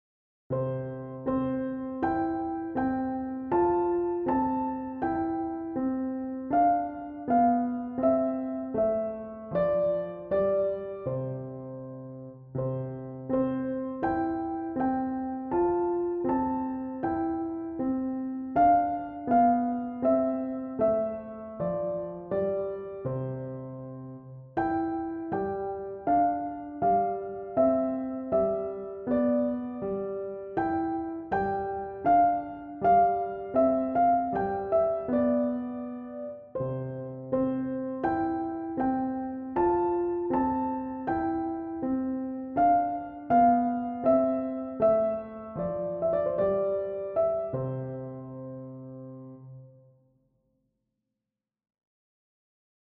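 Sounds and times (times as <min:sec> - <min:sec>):
piano: 0:00.5 - 0:50.4.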